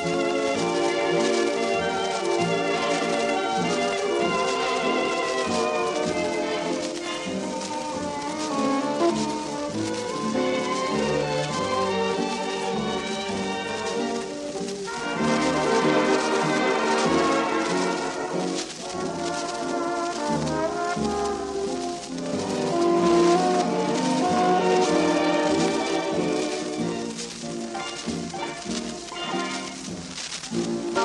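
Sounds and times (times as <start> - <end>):
waltz music: 0.0 - 31.0.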